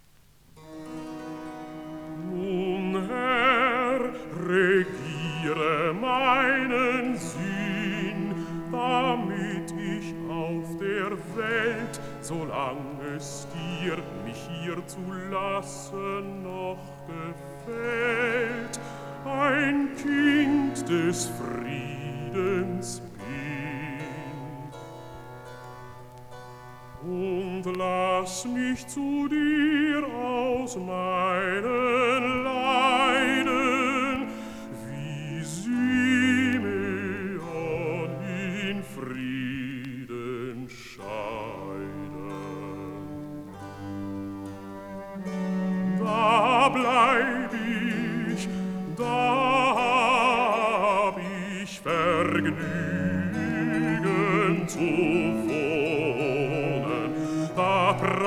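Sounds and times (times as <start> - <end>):
recitative singing: 1.6 - 25.5, 26.9 - 58.2.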